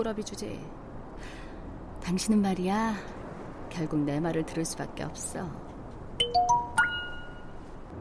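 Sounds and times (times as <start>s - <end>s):
speech: 0.0s - 1.4s, 2.0s - 6.3s
phone ringing with incoming call, rising electronic chime notes: 6.2s - 7.6s.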